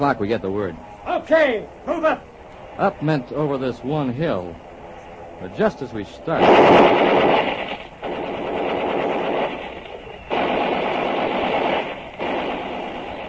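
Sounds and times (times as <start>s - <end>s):
speech: 0.0s - 4.7s, 5.4s - 7.5s
machine gun fire: 6.4s - 13.2s.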